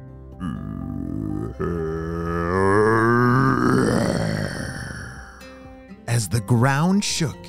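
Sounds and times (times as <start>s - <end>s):
speech: 0.4s - 0.7s, 1.6s - 1.8s, 6.2s - 7.4s
deep guttural monster growl made by a voice: 0.4s - 5.5s.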